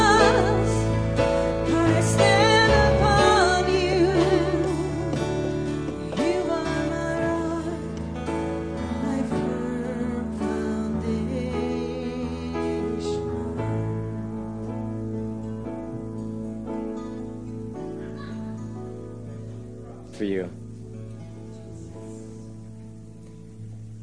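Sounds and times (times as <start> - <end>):
song: 0.0 - 17.8.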